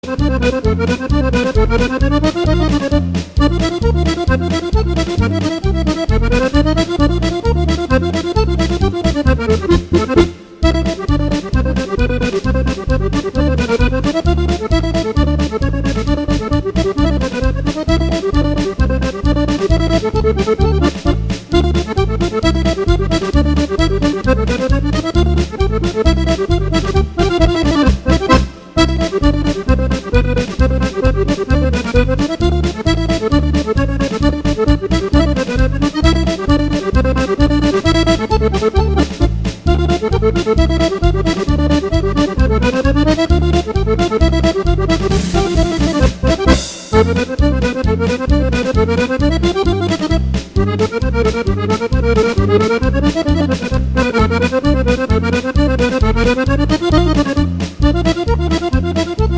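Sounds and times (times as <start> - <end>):
polka music: 0.0 - 59.3.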